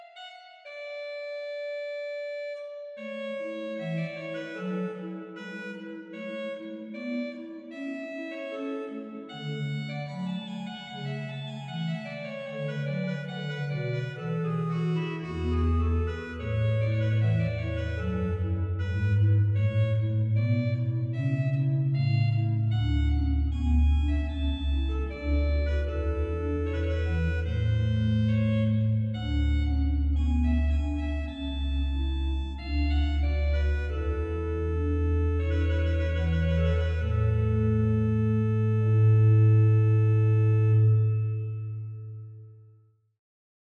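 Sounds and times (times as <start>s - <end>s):
organ recitative on cromorne stop: 8.9s - 42.2s.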